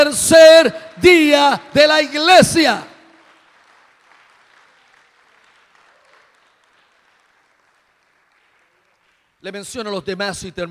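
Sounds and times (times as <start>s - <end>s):
speech: 0.0s - 2.9s, 9.4s - 10.6s
loud audience applause: 2.3s - 9.4s.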